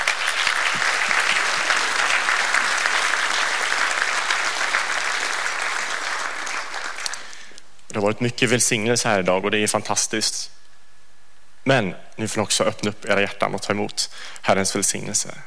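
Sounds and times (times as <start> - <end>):
audience applause: 0.0 - 7.4
speech: 8.0 - 10.6, 11.7 - 15.4.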